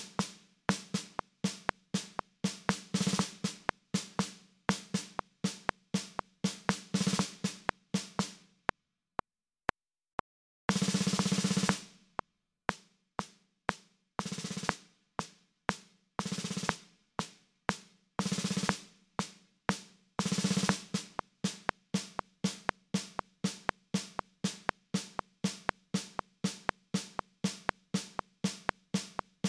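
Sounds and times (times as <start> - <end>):
snare drum: 0.0 - 8.4, 10.7 - 12.0, 12.7 - 29.4.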